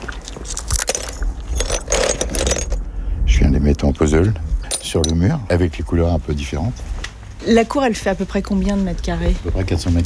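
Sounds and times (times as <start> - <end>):
small ceramic shards rattling: 0.4 - 2.8
speech: 3.8 - 10.0.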